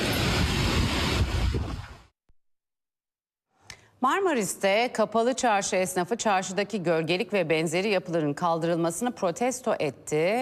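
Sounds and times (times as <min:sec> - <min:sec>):
strong wind blowing dust through a village in Bingöl: 0:00.0 - 0:02.1
speech: 0:04.0 - 0:10.4.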